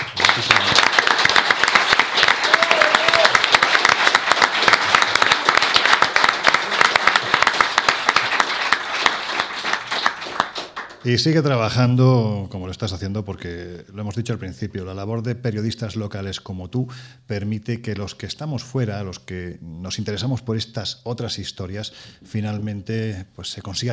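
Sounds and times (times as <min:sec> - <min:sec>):
audience applause: 0:00.0 - 0:11.0
speech: 0:11.0 - 0:23.9.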